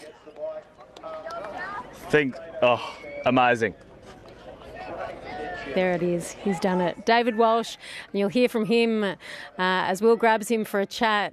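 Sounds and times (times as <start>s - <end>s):
crowd cheering at a race finish line: 0.0s - 3.6s, 4.2s - 8.9s
speech: 2.1s - 3.9s, 5.8s - 11.3s.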